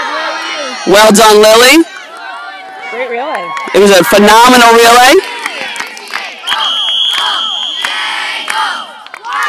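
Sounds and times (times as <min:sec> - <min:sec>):
speech: 0:00.8 - 0:02.0, 0:02.9 - 0:05.4
whistle signalling end of the Swedish relays: 0:06.4 - 0:08.1.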